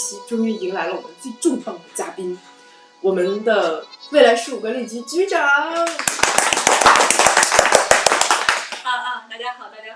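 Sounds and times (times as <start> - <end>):
speech: 0.1 - 6.4
crowd applause: 5.9 - 8.9.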